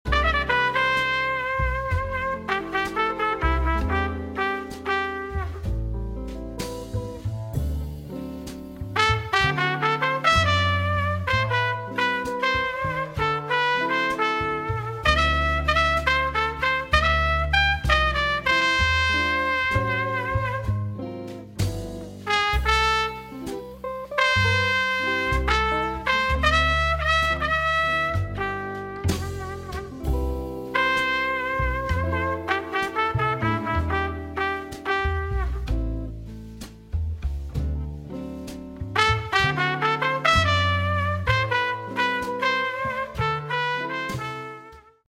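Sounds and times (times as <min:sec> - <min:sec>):
jazz music: 0:00.0 - 0:45.0.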